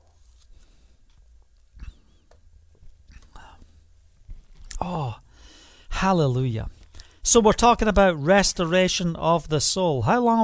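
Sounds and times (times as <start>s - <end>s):
man sipping water: 1.6s - 5.3s
speech: 6.0s - 10.4s.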